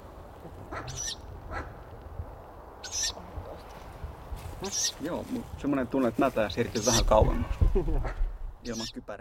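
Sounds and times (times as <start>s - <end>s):
speech: 0.7s - 1.7s, 4.6s - 9.1s
Ural owl hissing call: 0.7s - 1.8s, 2.8s - 3.2s.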